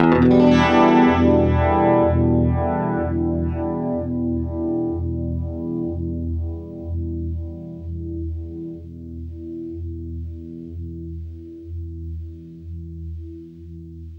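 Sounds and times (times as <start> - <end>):
guitar E minor seventh chord through Univibe: 0.0 - 10.5.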